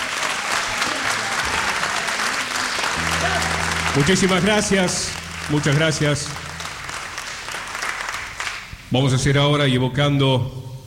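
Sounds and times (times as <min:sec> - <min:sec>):
audience applause: 0:00.0 - 0:08.6
speech: 0:04.0 - 0:06.4, 0:08.9 - 0:10.7.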